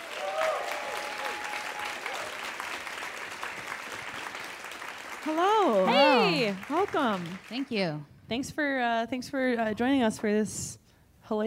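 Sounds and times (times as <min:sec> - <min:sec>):
audience applauding at a Portland comedy show: 0:00.0 - 0:07.9
speech: 0:05.2 - 0:11.4.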